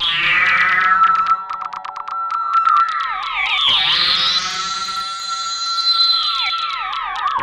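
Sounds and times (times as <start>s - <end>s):
siren: 0.0s - 7.4s.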